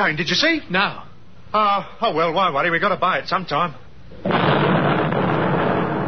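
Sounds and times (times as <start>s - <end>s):
speech: 0.0s - 4.7s
V-1 flying bomb exploding: 4.2s - 6.0s.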